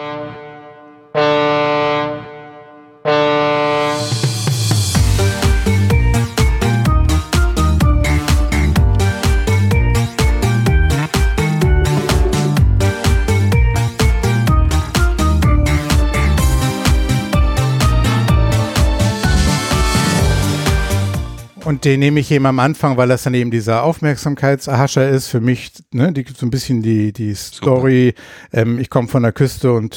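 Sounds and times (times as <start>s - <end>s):
ship foghorn blast: 0.0s - 4.2s, 10.4s - 21.7s
loud steadily beating song: 3.9s - 22.4s
speech: 21.8s - 29.9s.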